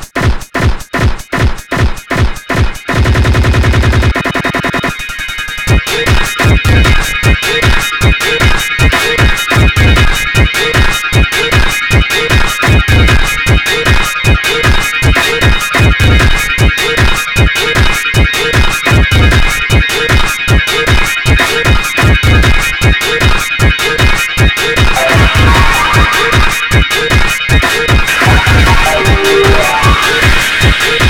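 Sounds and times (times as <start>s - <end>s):
noise techno music: 0.3s - 31.0s.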